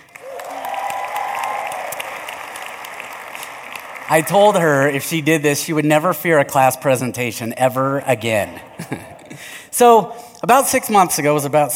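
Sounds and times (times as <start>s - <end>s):
audience applause welcoming a guest on stage: 0.0s - 5.0s, 8.2s - 9.6s
speech: 4.1s - 9.1s, 9.8s - 11.7s
laughter: 7.4s - 10.1s.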